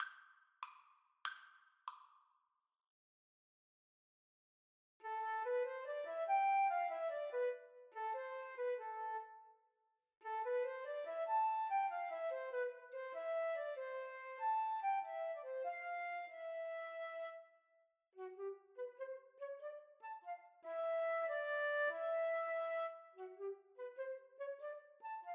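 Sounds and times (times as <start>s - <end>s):
flute duet: 5.0s - 9.6s, 10.2s - 17.5s, 18.2s - 25.3s.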